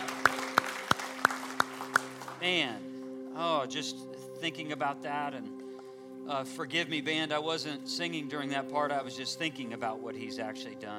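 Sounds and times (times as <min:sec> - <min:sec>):
audience clapping hands: 0:00.0 - 0:02.8
speech: 0:02.4 - 0:05.6, 0:06.3 - 0:10.9.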